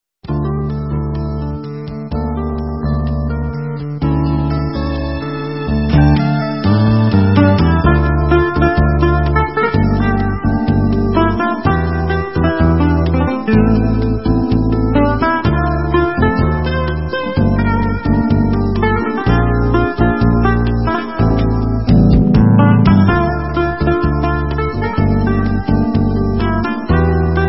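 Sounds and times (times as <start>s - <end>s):
instrumental music: 0.2s - 27.4s.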